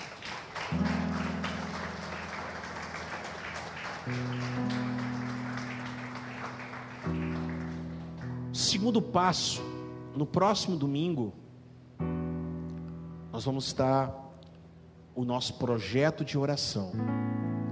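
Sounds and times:
audience applause: 0.0s - 8.4s
speech: 4.1s - 4.6s, 8.8s - 11.4s, 13.4s - 14.2s, 15.2s - 17.4s.

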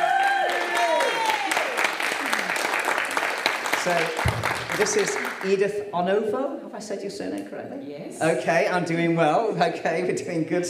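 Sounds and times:
audience clapping to welcome a guest speaker at a church gathering: 0.0s - 5.8s
speech: 3.8s - 10.6s.

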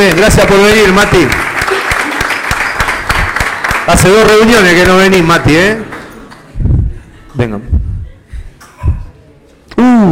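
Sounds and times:
audience applause: 0.0s - 5.0s
speech: 0.1s - 1.5s, 3.9s - 6.0s, 7.4s - 7.9s, 9.8s - 10.1s.

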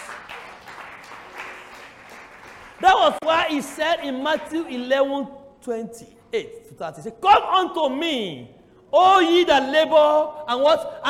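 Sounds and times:
audience clapping: 0.0s - 3.9s
speech: 2.8s - 11.0s.

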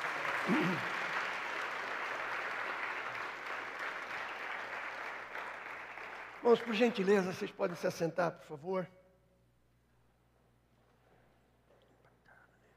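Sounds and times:
audience applause: 0.0s - 7.7s
speech: 0.5s - 1.0s, 6.5s - 9.0s.

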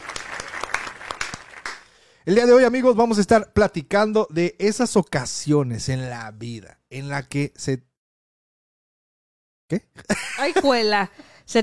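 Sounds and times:
applause: 0.0s - 2.2s
speech: 2.3s - 7.9s, 9.7s - 11.6s.

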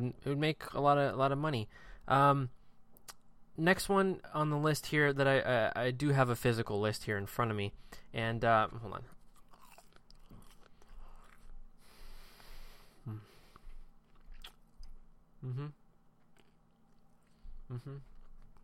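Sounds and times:
speech: 0.0s - 2.6s, 3.6s - 9.2s, 13.0s - 13.3s, 15.4s - 15.8s, 17.7s - 18.1s
steady noise: 0.0s - 18.6s
chewing sausage: 9.0s - 11.8s, 13.3s - 18.6s
vocal murmurs: 15.4s - 15.8s, 17.7s - 18.1s.

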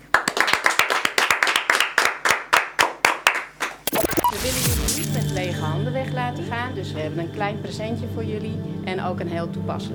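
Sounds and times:
audience applause: 0.0s - 3.8s
speech: 4.4s - 9.9s.

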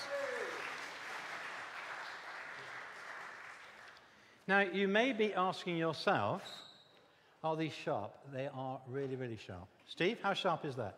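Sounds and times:
high whistle or cheer: 0.0s - 0.9s
audience applause: 0.0s - 4.0s
speech: 4.5s - 6.6s, 7.4s - 10.9s.

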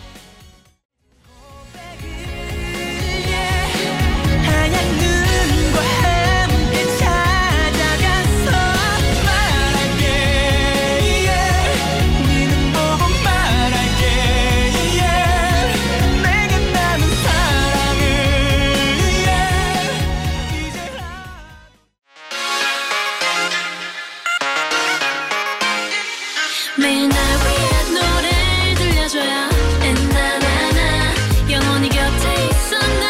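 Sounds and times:
K-pop song playing: 1.1s - 33.0s.

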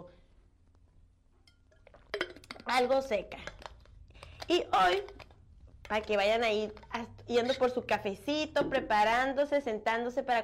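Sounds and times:
glass clinking: 1.4s - 2.7s
speech: 2.6s - 3.5s, 4.5s - 5.2s, 5.9s - 10.4s.

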